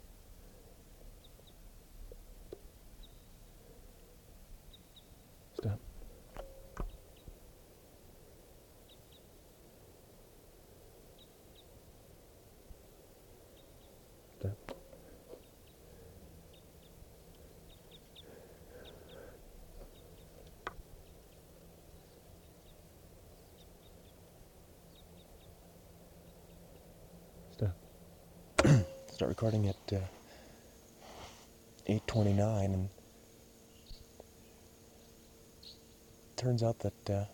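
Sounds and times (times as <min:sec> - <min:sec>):
distant type 5 bird calling across the clearing: 0:02.5 - 0:37.3
speech: 0:05.6 - 0:05.9, 0:27.6 - 0:27.8, 0:28.7 - 0:30.2, 0:31.9 - 0:33.0, 0:36.4 - 0:37.3.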